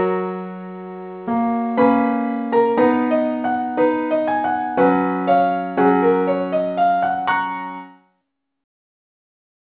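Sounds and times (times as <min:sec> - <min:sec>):
keyboard playing: 0:01.2 - 0:07.9.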